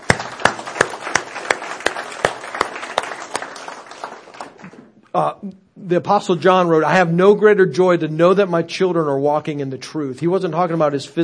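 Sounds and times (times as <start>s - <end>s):
audience applause: 0.0s - 4.9s
speech: 5.2s - 11.2s.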